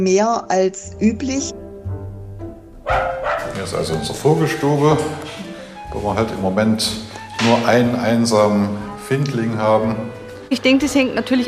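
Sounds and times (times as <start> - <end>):
speech: 0.0 - 1.6, 2.9 - 11.4
dog barking: 2.8 - 4.0.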